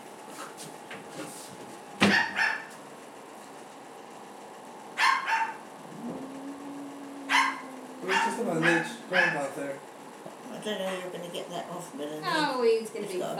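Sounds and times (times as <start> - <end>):
dog barking outside: 2.0 - 2.8, 4.9 - 9.6
speech: 8.5 - 9.8, 10.6 - 13.3.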